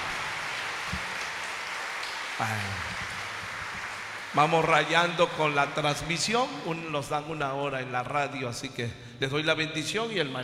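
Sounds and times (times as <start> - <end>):
audience applause: 0.0 - 6.7
speech: 2.4 - 3.1, 4.3 - 10.4.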